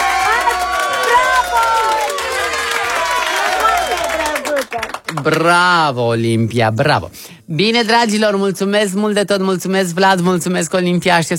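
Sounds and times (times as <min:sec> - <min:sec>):
crowd cheering: 0:00.0 - 0:05.4
audience applause: 0:00.0 - 0:05.5
speech: 0:05.1 - 0:11.3.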